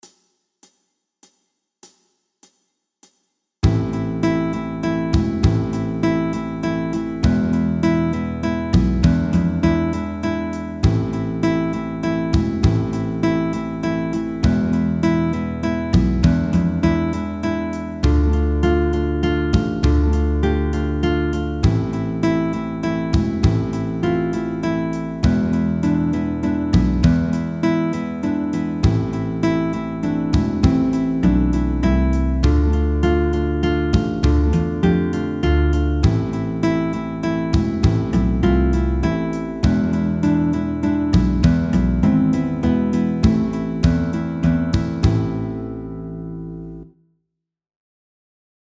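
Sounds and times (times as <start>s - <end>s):
Spanish dance played on guitar: 3.6s - 46.8s.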